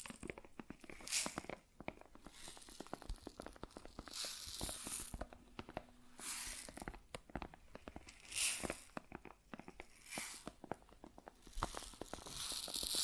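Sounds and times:
grain pouring or shaking: 0:00.0 - 0:01.6, 0:02.2 - 0:05.3, 0:06.2 - 0:06.9, 0:08.1 - 0:09.0, 0:09.9 - 0:10.6, 0:11.4 - 0:13.0
grain crackling and rustling: 0:00.0 - 0:13.0.

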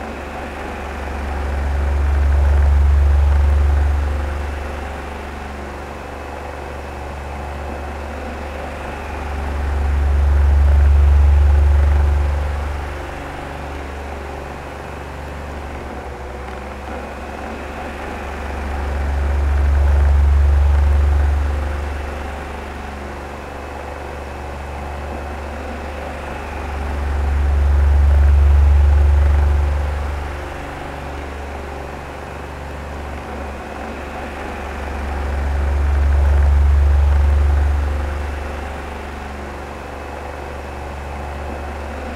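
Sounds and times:
oscillating fan humming: 0:00.0 - 0:42.1.

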